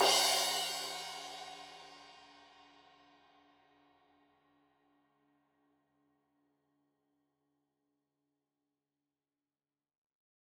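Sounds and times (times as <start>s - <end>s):
15 inch crash cymbal edge hit: 0.0s - 2.2s.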